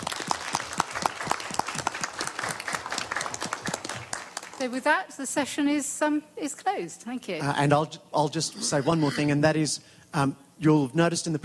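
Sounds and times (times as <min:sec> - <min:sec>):
audience applause: 0:00.0 - 0:04.6
speech: 0:04.6 - 0:11.4.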